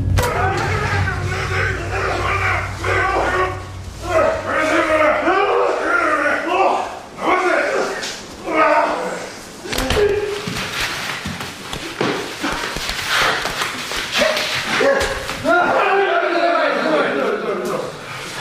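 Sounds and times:
sumo wrestlers grunting and shouting: 0:00.2 - 0:10.5, 0:12.4 - 0:18.1
sharp slaps in sumo training: 0:09.7 - 0:15.5.

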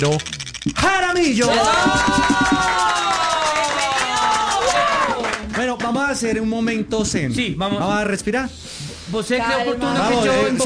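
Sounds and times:
speech: 0:00.0 - 0:02.9, 0:05.6 - 0:10.6
audience applause welcoming a guest: 0:01.5 - 0:05.9.

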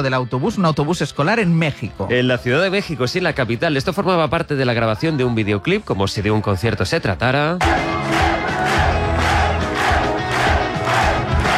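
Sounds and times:
speech: 0:00.0 - 0:08.1
large crowd of fans cheering and shouting in a street: 0:07.6 - 0:11.5.

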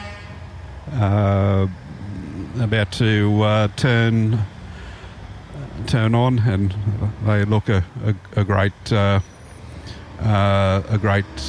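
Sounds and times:
Hume truck horn blast at a street parade in Kempsey: 0:00.0 - 0:00.7
speech: 0:00.9 - 0:01.9, 0:02.6 - 0:04.5, 0:05.8 - 0:09.3, 0:10.2 - 0:11.4.

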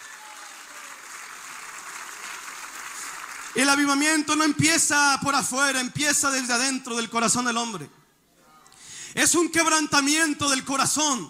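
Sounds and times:
crowd clapping in praise: 0:00.0 - 0:04.1
speech: 0:03.6 - 0:08.0, 0:09.2 - 0:11.2.

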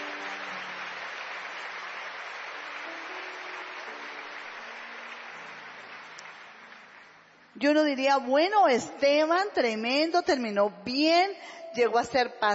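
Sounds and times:
audience applauding: 0:00.0 - 0:07.5
speech: 0:07.6 - 0:12.5.

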